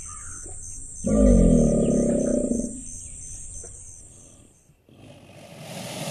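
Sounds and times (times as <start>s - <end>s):
American alligator chirps as quick descending yelps: 0.0s - 4.7s.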